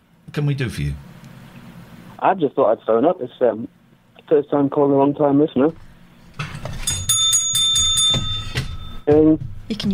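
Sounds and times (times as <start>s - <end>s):
speech: 0.4s - 1.1s, 2.2s - 5.8s, 9.1s - 9.9s
metallic bell ringing: 6.8s - 9.1s.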